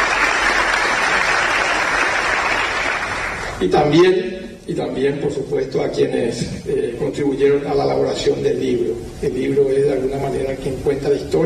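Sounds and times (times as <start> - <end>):
audience applause: 0.0 - 3.6
speech: 3.6 - 11.4.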